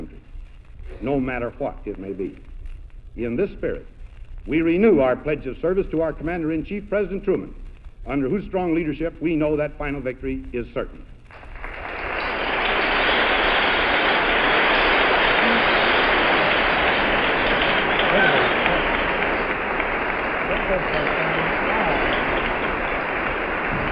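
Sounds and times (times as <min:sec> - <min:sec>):
speech: 0:01.0 - 0:02.5, 0:03.2 - 0:11.1
huge crowd applause: 0:11.3 - 0:23.9
faint cheering: 0:11.6 - 0:23.9.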